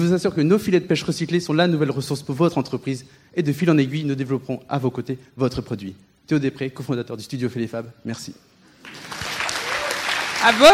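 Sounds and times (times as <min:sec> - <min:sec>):
speech: 0:00.0 - 0:09.2, 0:10.4 - 0:10.7
audience applause: 0:08.8 - 0:10.7.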